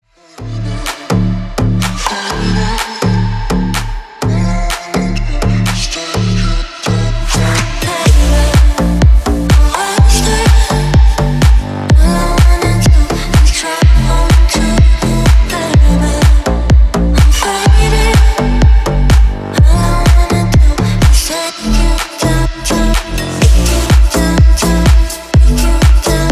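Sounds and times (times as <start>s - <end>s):
echoing loop: 0.9s - 26.3s.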